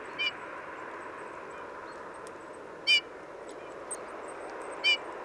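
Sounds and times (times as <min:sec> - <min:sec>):
Pyrrhula pyrrhula calling: 0:00.1 - 0:00.4, 0:02.9 - 0:03.1, 0:04.8 - 0:05.1.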